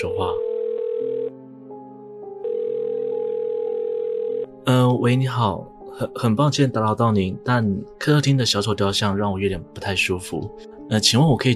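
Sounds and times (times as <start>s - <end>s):
speech: 0.1s - 0.5s, 4.7s - 11.5s
telephone dial tone: 0.4s - 1.3s, 2.4s - 4.5s.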